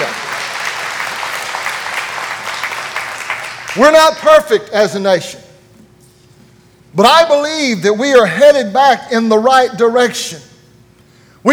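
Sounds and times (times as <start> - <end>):
congregation giving a hand clap of praise: 0.0 - 4.2
speech: 3.8 - 5.4, 7.0 - 10.5.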